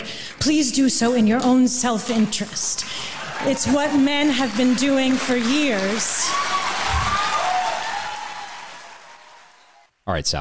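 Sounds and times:
speech: 0.4s - 6.4s, 10.1s - 10.3s
steady applause from a sizable audience: 2.2s - 9.9s
scattered cheers: 3.1s - 9.9s.

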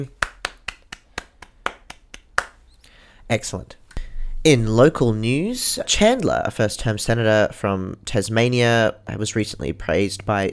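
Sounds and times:
hand clapping: 0.0s - 2.7s
speech: 3.3s - 3.8s, 4.4s - 10.5s.

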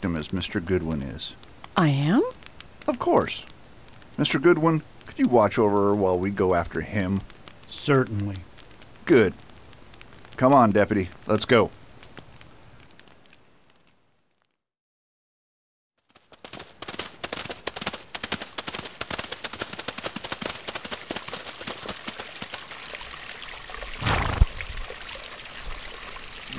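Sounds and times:
speech: 0.0s - 3.5s, 4.2s - 8.5s, 9.1s - 9.5s, 10.4s - 11.8s
horses drinking: 20.3s - 26.5s
stream water flowing: 21.4s - 26.5s.

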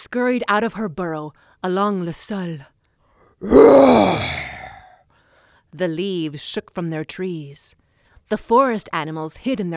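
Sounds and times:
speech: 0.0s - 2.7s, 3.4s - 4.5s, 5.7s - 9.7s
voice imitating a lion's roar: 3.4s - 4.9s.

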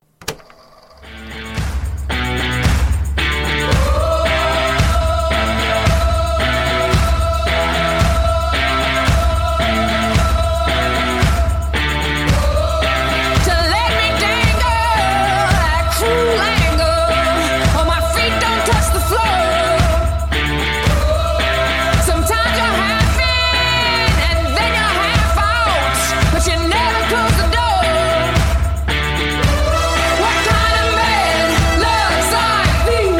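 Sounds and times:
pop song played from recording: 1.2s - 33.1s.

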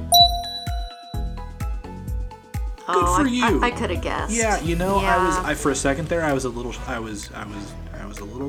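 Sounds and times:
electronic beep tone: 0.1s - 1.7s
bright rhythmic chiming jingle: 0.1s - 2.1s
speech: 2.9s - 8.4s.

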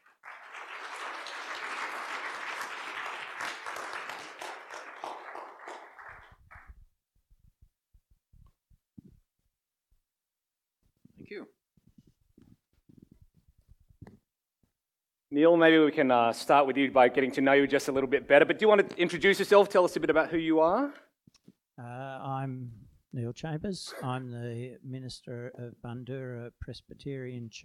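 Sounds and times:
audience applause at a Christian gathering: 0.0s - 6.8s
speech: 11.3s - 11.6s, 15.4s - 21.0s, 23.3s - 27.6s.

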